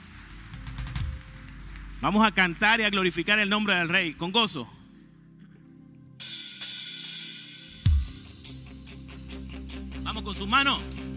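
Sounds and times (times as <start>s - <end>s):
audience applause: 0.0s - 3.4s
speech: 2.0s - 4.8s, 10.4s - 11.1s.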